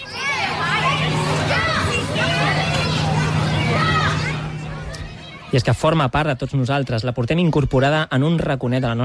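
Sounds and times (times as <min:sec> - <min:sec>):
children shouting at recess on a school playground: 0:00.0 - 0:05.8
speech: 0:05.5 - 0:09.0.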